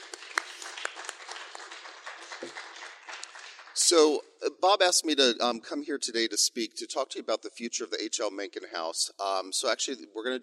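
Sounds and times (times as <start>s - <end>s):
crowd applauding: 0.0s - 4.2s
speech: 3.9s - 10.4s.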